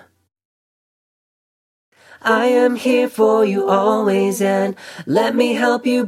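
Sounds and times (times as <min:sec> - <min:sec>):
pop music: 0:02.2 - 0:06.0.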